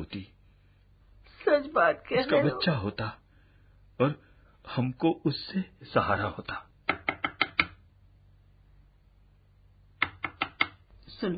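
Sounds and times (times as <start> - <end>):
speech: 0.0 - 0.3, 1.4 - 3.2, 4.0 - 6.7, 11.2 - 11.3
knocking on a door: 6.9 - 7.8.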